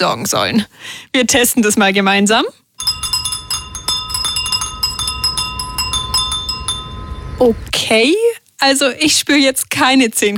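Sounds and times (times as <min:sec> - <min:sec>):
speech: 0:00.0 - 0:02.6, 0:07.4 - 0:10.3
Japanese furin glass wind chimes: 0:02.8 - 0:07.7.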